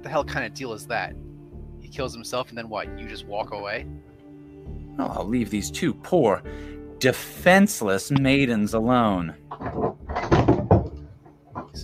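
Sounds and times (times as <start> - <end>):
speech: 0.0 - 1.3, 1.9 - 4.1, 5.0 - 9.8
books falling off a shelf: 9.5 - 11.8.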